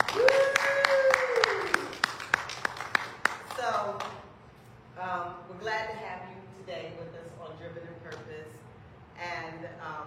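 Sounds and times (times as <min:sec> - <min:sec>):
audience hand clapping: 0:00.0 - 0:04.2.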